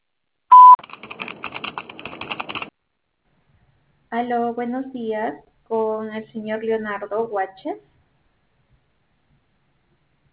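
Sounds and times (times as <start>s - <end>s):
voicemail recording tone beep: 0.5s - 0.8s
speech: 4.2s - 7.9s.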